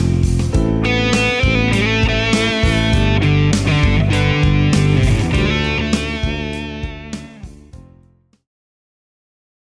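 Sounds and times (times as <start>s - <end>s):
guitar volume swells: 0.6s - 7.7s.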